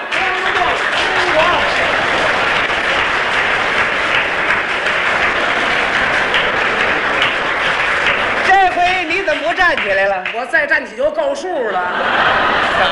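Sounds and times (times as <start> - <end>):
audience standing ovation, applause and cheering: 0.0 - 10.9, 12.0 - 12.8
laughter: 0.8 - 9.0, 11.4 - 12.8
speech: 9.7 - 12.8.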